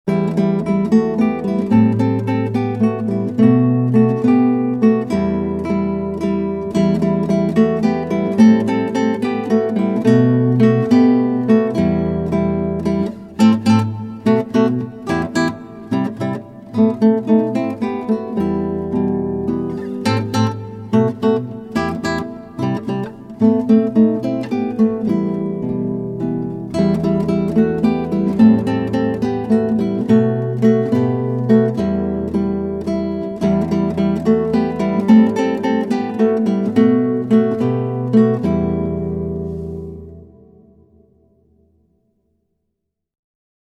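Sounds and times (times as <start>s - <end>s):
Latin guitar duet: 0.1s - 41.6s.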